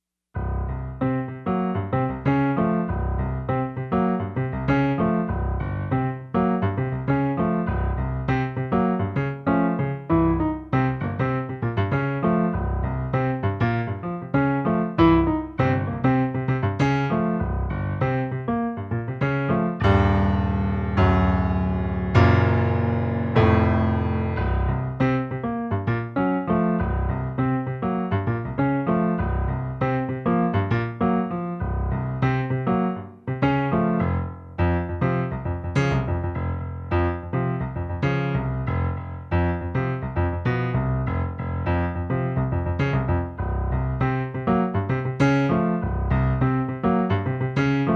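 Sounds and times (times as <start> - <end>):
blues bass line in C: 0.4 - 47.9.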